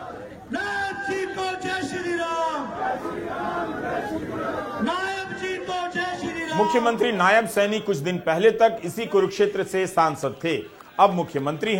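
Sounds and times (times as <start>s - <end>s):
crowd chanting Jai Shri Ram slogans at a political welcome in Kurukshetra: 0.0s - 7.2s
crowd shouting: 0.0s - 11.7s
speech: 6.6s - 11.7s.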